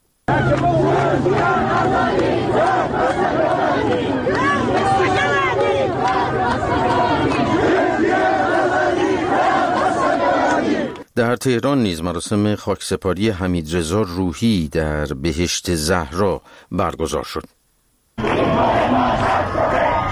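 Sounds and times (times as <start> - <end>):
crowd chanting protest slogans at a funeral: 0.3 - 11.0, 18.2 - 20.1
speech: 11.3 - 17.6.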